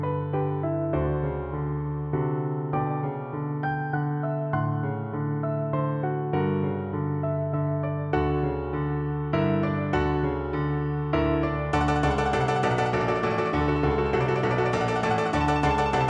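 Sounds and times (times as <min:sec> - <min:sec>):
piano piece: 0:00.0 - 0:16.0.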